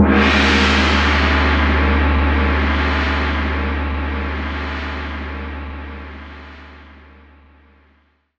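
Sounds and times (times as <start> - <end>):
gong: 0.0 - 7.6.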